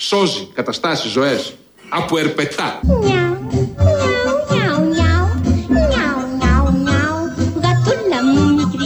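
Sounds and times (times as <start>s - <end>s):
speech: 0.1s - 4.0s
cat meowing: 2.9s - 8.7s.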